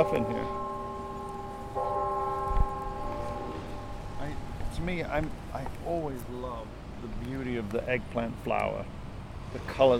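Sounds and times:
speech: 0.0 - 0.6, 4.8 - 9.9
university clock tower bells chiming: 0.0 - 4.9.

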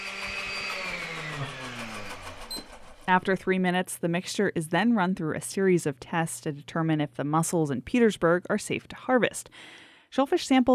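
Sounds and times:
blender motor whirring, pureeing mussels from Petersburg for shellfish safety testing: 0.0 - 3.1
speech: 3.1 - 10.7.

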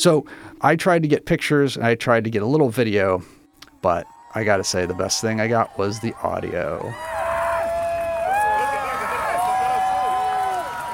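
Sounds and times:
speech: 0.0 - 7.1
crowd yelling and screaming during eclipse totality: 3.7 - 10.9.

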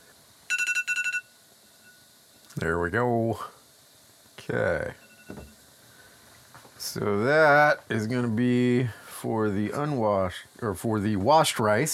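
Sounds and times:
faint hum: 0.0 - 11.9
kitchen timer beeping: 0.5 - 2.0, 5.0 - 5.4
speech: 2.6 - 3.6, 4.5 - 5.5, 6.9 - 11.9.

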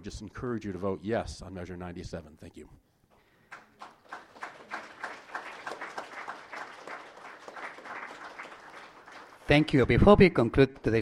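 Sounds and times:
speech: 0.0 - 2.9, 9.5 - 11.0
audience applause: 3.5 - 9.7.

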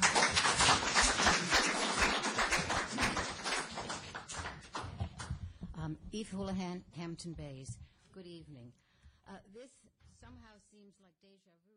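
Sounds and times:
audience applause at public meeting: 0.0 - 5.3
speech: 5.9 - 11.7.

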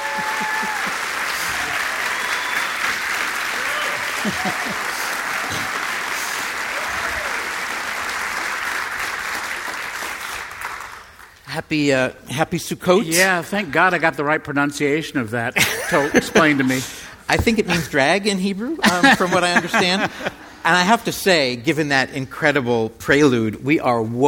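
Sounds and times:
laughter: 0.0 - 2.0, 3.6 - 5.8, 15.6 - 18.0, 18.8 - 20.8
audience at a community center talk applauding speakers onto the stage: 0.0 - 11.4
speech: 4.2 - 4.9, 11.6 - 24.2.

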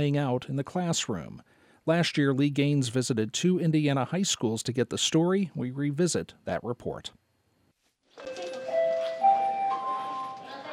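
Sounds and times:
speech: 0.0 - 7.2
school bell ringing: 8.2 - 10.7.

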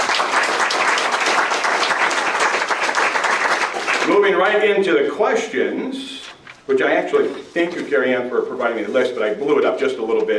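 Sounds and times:
crowd applauding: 0.0 - 4.3
speech: 4.2 - 10.3.

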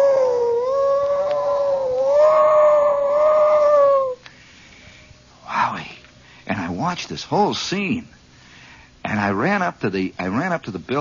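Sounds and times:
voice imitating a siren wail: 0.0 - 4.2
speech: 6.9 - 8.2, 9.2 - 11.0.

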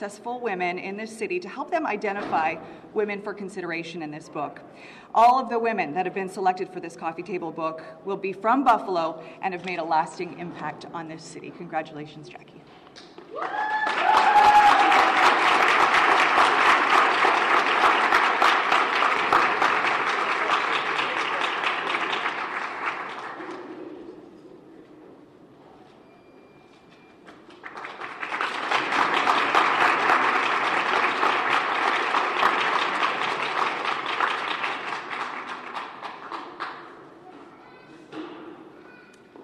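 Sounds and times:
speech: 0.0 - 14.6
audience applause: 13.3 - 23.7, 27.5 - 36.8.

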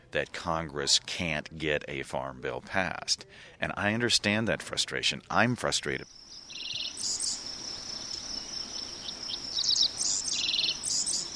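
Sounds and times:
speech: 0.1 - 7.2
dickcissels singing over a farm in southwest Iowa: 6.5 - 11.3.

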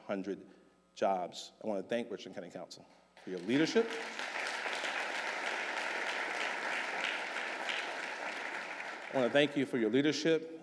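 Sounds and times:
speech: 0.1 - 4.3, 9.1 - 10.6
audience applause: 3.3 - 9.6.

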